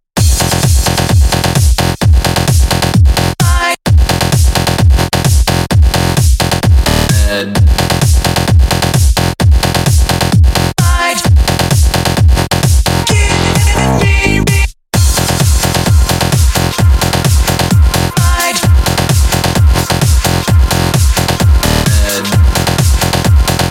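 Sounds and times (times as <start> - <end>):
electro rock music: 0.2 - 23.6.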